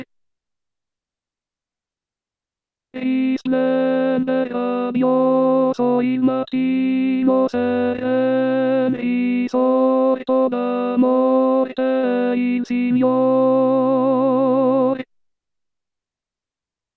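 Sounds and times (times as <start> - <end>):
tenors singing an Easter hymn: 3.0 - 15.0.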